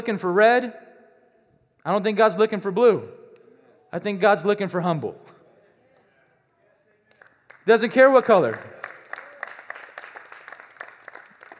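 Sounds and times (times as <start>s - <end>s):
speech: 0.0s - 0.8s, 1.8s - 3.2s, 3.9s - 5.4s, 7.7s - 8.8s
audience clapping: 7.0s - 11.5s.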